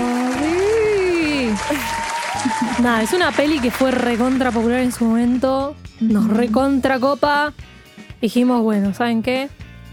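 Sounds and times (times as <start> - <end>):
applause in the background: 0.0 - 5.4
speech: 2.8 - 9.6.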